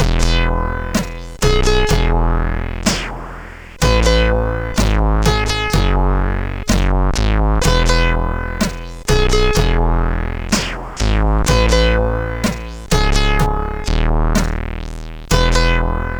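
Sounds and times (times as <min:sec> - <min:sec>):
SID CSG8580 chip music: 0:00.0 - 0:03.0, 0:03.8 - 0:14.5, 0:15.3 - 0:16.1.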